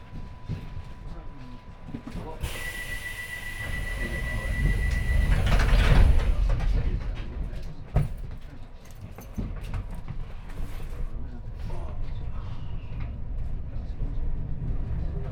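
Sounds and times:
London Underground District Line train: 0.0 - 15.3.

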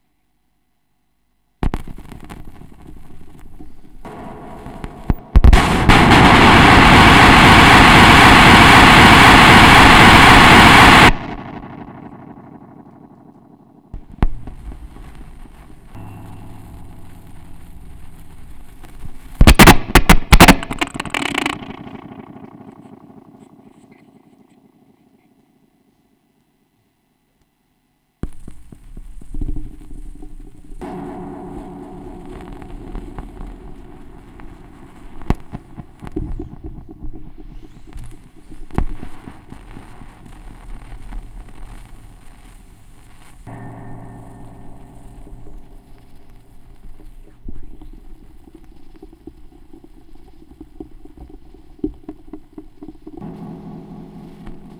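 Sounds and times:
vinyl record noise: 0.0 - 25.4, 28.2 - 54.7.

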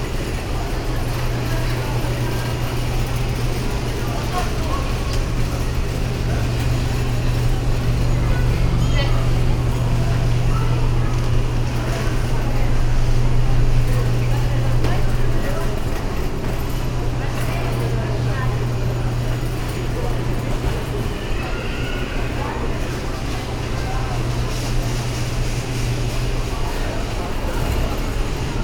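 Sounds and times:
supermarket ambience in Brazil: 0.0 - 28.6.

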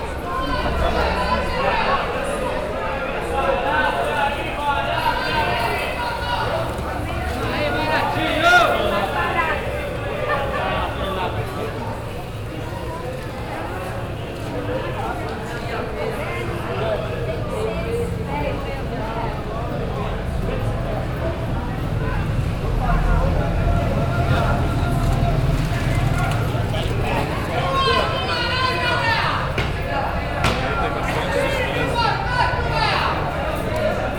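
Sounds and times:
market ambience in Brazil: 0.0 - 34.1.

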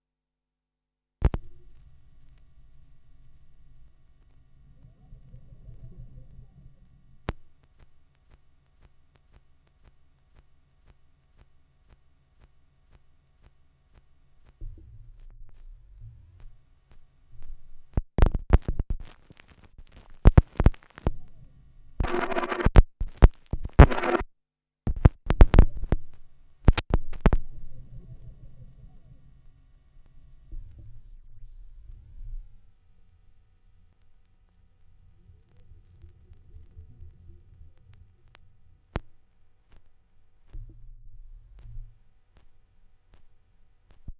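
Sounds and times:
vinyl record noise: 1.2 - 24.3, 24.9 - 44.1.

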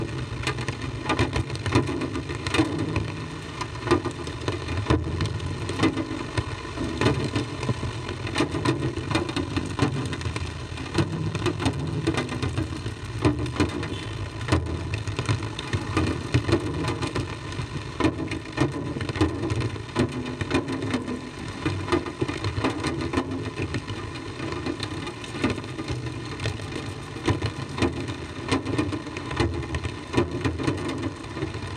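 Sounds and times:
drums in the rain with tape echo over tape recorder loudspeaker: 0.0 - 31.7
rain: 0.0 - 31.7.

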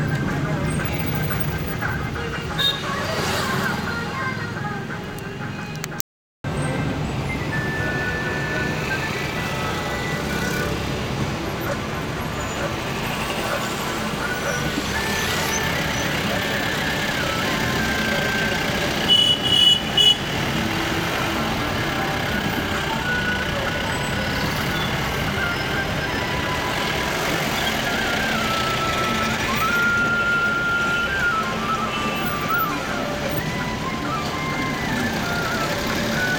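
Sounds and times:
street traffic in Boudha, Kathmandu, Nepal: 0.0 - 36.3.

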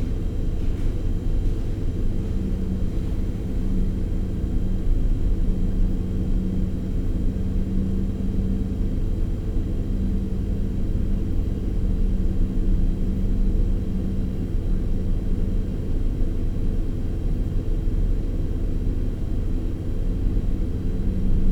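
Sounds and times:
refrigerator hum: 0.0 - 21.5.

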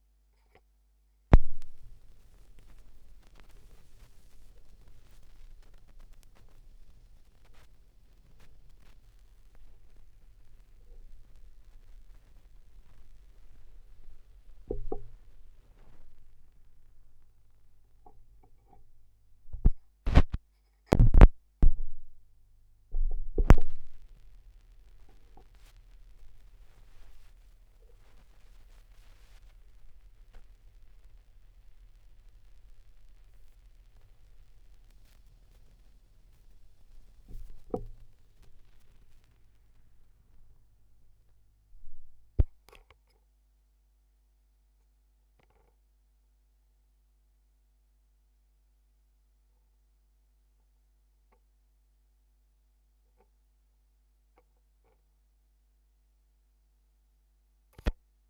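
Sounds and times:
vinyl record noise at 16 rpm: 1.3 - 42.8.

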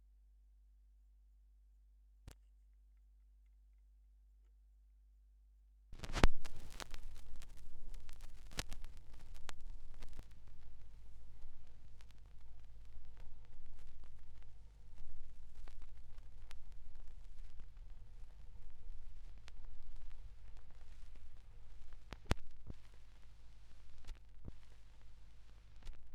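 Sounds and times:
vinyl record noise: 6.0 - 26.1.

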